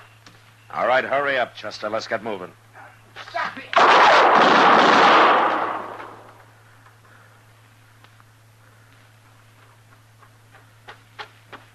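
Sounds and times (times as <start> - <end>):
faint low hum: 0.0 - 11.7
speech: 0.7 - 2.6
gunshot in an alley: 3.8 - 6.3.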